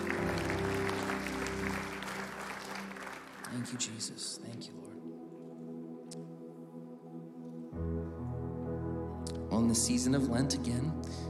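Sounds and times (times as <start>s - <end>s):
church congregation clapping: 0.0s - 4.7s
sustained musical tones: 0.0s - 11.1s
speech: 3.6s - 5.1s, 9.7s - 11.2s.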